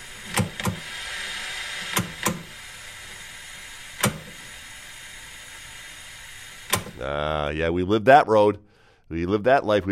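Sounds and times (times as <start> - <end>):
static hiss: 0.0 - 7.1
old television channel dial clicks: 0.3 - 0.9, 1.9 - 2.5, 4.0 - 4.4, 6.7 - 7.0
speech: 7.0 - 9.8.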